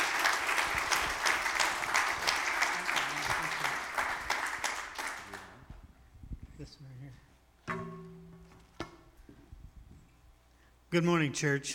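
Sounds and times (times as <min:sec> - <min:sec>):
church audience applause welcoming a speaker: 0:00.0 - 0:05.6
speech: 0:10.9 - 0:11.7.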